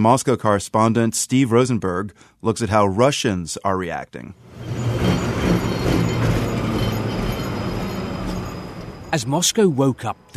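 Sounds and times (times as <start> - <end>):
speech: 0.0 - 5.7, 9.1 - 10.3
tram trundling along street: 4.4 - 10.3.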